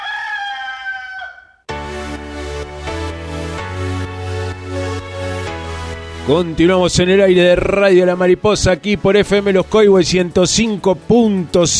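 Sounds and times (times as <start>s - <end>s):
rooster crowing: 0.0s - 1.7s
speech: 6.3s - 11.7s.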